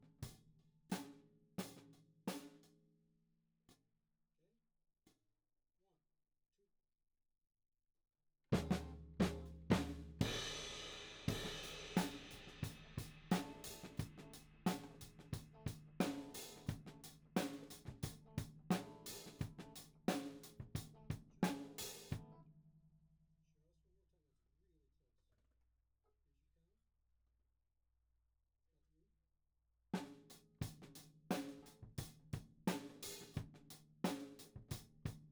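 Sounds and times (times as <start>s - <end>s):
tom drum: 8.6s - 22.2s, 30.6s - 35.2s.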